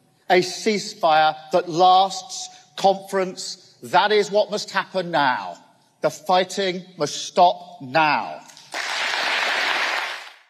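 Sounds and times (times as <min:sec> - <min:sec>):
speech: 0:00.3 - 0:08.5
conference audience applause: 0:08.7 - 0:10.4.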